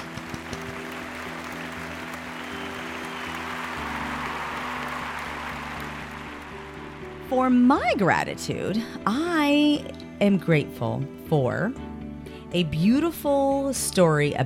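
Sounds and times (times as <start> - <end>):
crowd applause: 0.0 - 8.1
faint cheering: 0.4 - 7.4
speech: 7.3 - 11.9, 12.5 - 14.4.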